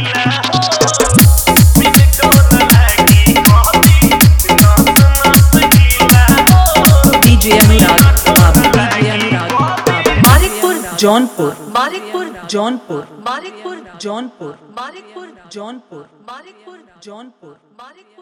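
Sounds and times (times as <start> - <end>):
Bhojpuri DJ song mix with dholak and bass: 0.0 - 13.6.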